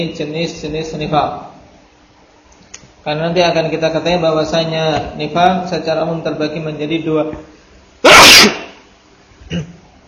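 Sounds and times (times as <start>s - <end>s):
speech: 0.0s - 1.5s, 3.0s - 8.6s, 9.5s - 9.7s
sneeze: 8.0s - 9.8s.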